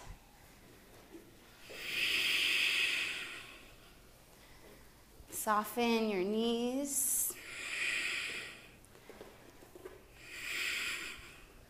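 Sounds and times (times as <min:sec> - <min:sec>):
Ujjayi breathing hiss during a yoga class: 0:01.7 - 0:03.8, 0:07.3 - 0:08.8, 0:10.2 - 0:11.6
speech: 0:05.5 - 0:07.1.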